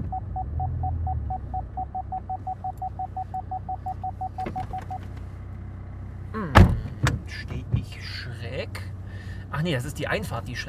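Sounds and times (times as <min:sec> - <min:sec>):
car parking sensor beeping: 0:00.0 - 0:05.1
low car engine rumble: 0:00.0 - 0:10.6
speech: 0:09.6 - 0:10.6.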